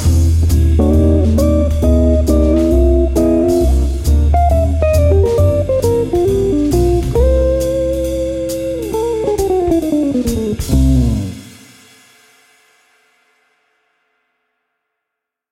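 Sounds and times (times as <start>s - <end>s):
jazz session: 0.0s - 11.9s.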